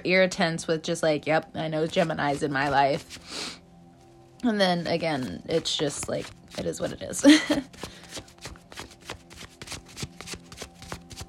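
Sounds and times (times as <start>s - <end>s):
speech: 0.0s - 3.6s, 4.4s - 8.3s
tarot cards being shuffled by hand: 1.9s - 3.2s, 4.8s - 11.2s.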